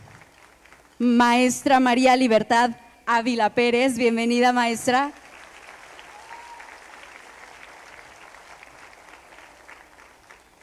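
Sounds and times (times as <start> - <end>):
speech: 1.0 - 5.2
audience applause: 5.2 - 10.6.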